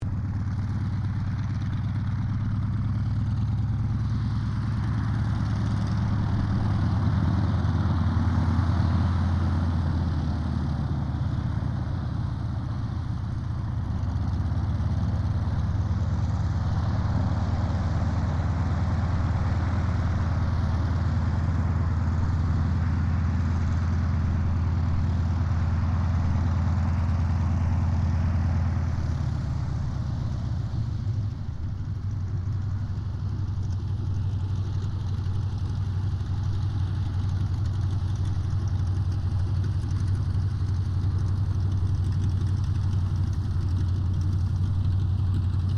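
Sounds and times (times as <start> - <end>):
CAC Wirraway aircraft taxiing: 0.0 - 45.7.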